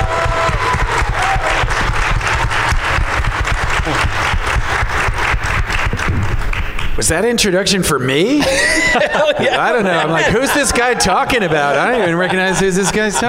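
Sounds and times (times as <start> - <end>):
audience applause welcoming a guest: 0.0 - 7.0
speech: 7.0 - 13.2
laughter: 8.2 - 13.2.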